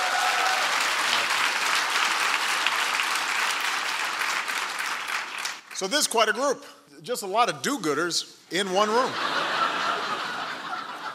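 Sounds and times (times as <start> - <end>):
audience applause: 0.0 - 5.8
speech: 5.8 - 9.4
laughter: 8.9 - 11.1.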